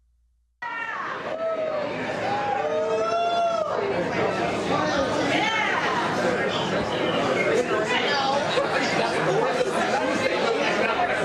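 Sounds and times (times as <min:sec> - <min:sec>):
restaurant background chatter: 0:00.6 - 0:11.2.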